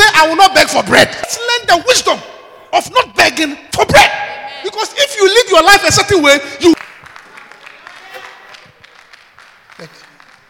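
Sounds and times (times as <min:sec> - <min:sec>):
speech: 0:00.2 - 0:04.1, 0:04.8 - 0:06.9
audience clapping: 0:06.8 - 0:10.4.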